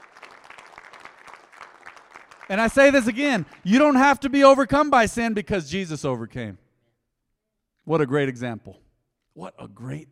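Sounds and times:
audience clapping: 0.0s - 4.9s
speech: 2.5s - 6.6s, 7.9s - 8.8s, 9.4s - 10.1s.

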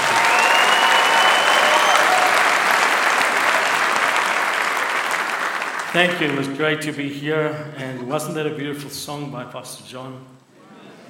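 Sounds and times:
church audience applause welcoming a guest pastor: 0.0s - 6.6s
speech: 6.0s - 10.4s.

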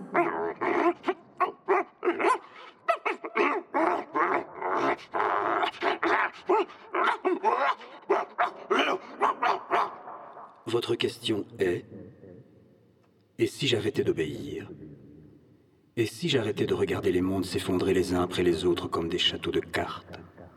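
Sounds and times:
dog barking and whimpering: 0.0s - 10.4s
speech: 10.7s - 12.0s, 13.4s - 14.8s, 16.0s - 20.1s.

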